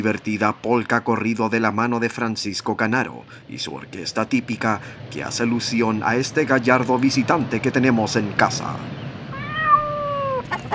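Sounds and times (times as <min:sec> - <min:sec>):
speech: 0:00.0 - 0:09.0
cat meowing: 0:09.3 - 0:10.7.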